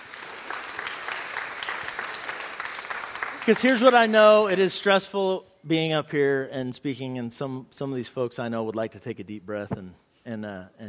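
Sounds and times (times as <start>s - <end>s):
mild audience applause: 0.0s - 4.6s
speech: 3.4s - 10.8s.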